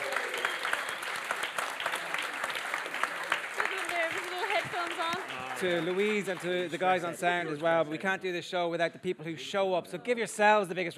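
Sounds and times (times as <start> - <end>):
audience applause: 0.0 - 7.8
speech: 5.6 - 10.9.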